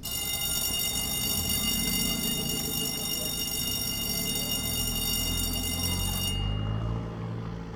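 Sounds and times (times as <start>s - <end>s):
North American school bell ringing: 0.0s - 7.7s.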